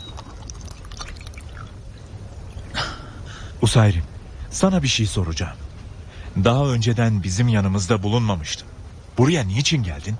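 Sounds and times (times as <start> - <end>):
water poured for a drink: 0.0 - 2.8
small water drips: 0.0 - 4.4
speech: 3.6 - 5.6, 6.4 - 10.1.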